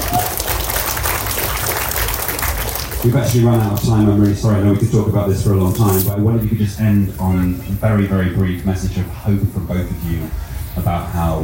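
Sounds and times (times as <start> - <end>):
audience applause at the close of a panel discussion: 0.0 - 4.3
speech: 3.0 - 11.4.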